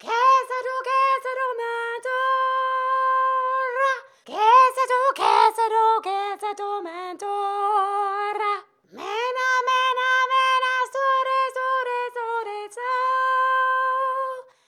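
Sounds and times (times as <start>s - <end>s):
person singing: 0.0s - 14.5s.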